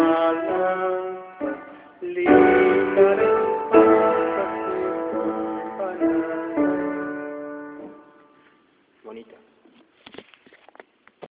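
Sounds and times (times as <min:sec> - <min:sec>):
soprano singing: 0:00.0 - 0:08.2.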